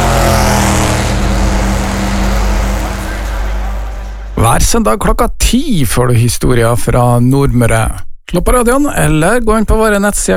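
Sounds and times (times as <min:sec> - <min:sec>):
Formula race car engines roaring before a race in Palm Springs: 0:00.0 - 0:04.4
speech: 0:04.6 - 0:10.3.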